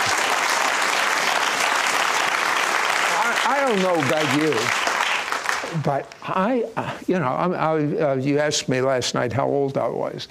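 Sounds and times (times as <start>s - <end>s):
audience applause: 0.0s - 6.2s
speech: 3.5s - 4.8s, 5.7s - 10.3s.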